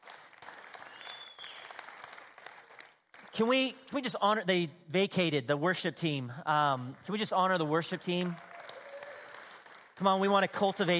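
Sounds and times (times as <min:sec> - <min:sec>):
audience clapping: 0:00.0 - 0:03.7, 0:06.6 - 0:10.9
speech: 0:03.4 - 0:08.5, 0:10.0 - 0:10.9.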